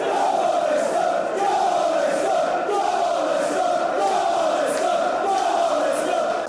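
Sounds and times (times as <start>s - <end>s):
Leicester football fans shouting in celebration: 0.0s - 6.4s.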